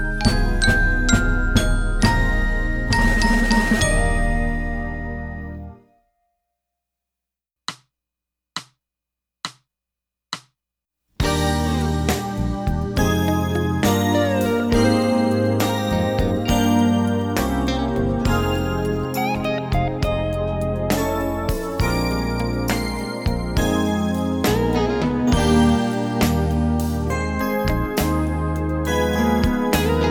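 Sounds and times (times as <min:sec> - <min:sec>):
percussion playing a triplet study: 0:00.0 - 0:05.6, 0:11.2 - 0:30.0.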